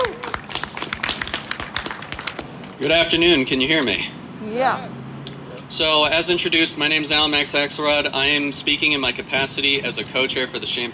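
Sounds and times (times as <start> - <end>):
crowd applause: 0.0 - 3.2
speech: 2.8 - 5.0, 5.7 - 10.9.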